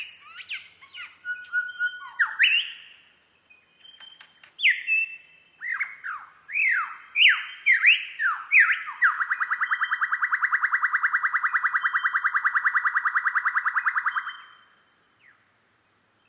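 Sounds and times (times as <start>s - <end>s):
superb lyrebird singing: 0.0s - 16.2s.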